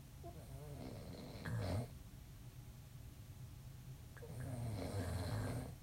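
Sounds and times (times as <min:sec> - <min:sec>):
person snoring: 0:00.3 - 0:01.9, 0:04.2 - 0:05.7.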